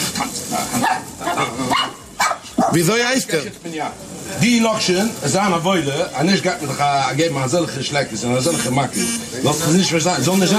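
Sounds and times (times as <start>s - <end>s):
dogs barking in a played recording: 0.0s - 2.9s
speech: 2.7s - 10.5s.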